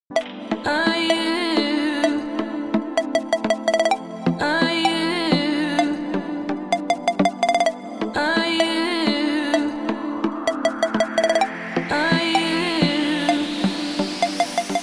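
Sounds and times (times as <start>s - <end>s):
dance beeps: 0.1s - 14.8s.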